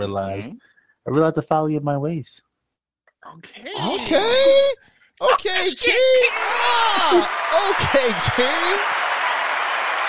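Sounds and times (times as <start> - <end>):
speech: 0.0 - 2.5, 3.2 - 9.0
crowd applause: 5.9 - 10.0.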